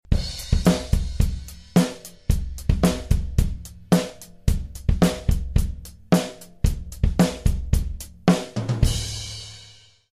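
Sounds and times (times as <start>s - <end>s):
music beat: 0.1s - 9.7s.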